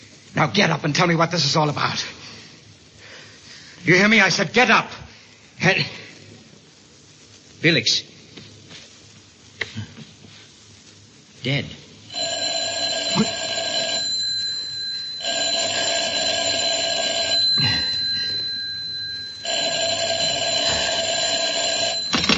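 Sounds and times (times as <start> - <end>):
speech: 0.4 - 2.2, 3.8 - 5.0, 5.6 - 6.1, 7.6 - 8.1, 11.4 - 11.8, 13.2 - 13.4
telephone ringing: 12.1 - 22.3.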